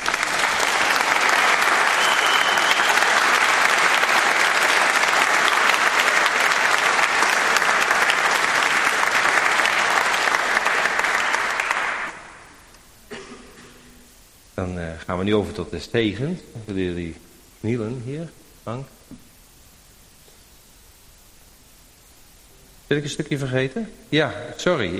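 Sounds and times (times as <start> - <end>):
audience applause at a wedding ceremony: 0.0 - 12.4
speech: 15.2 - 19.2, 22.9 - 24.9.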